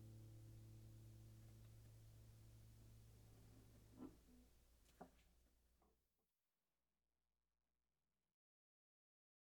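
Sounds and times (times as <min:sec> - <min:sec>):
Torres guitar: 0:00.0 - 0:04.4.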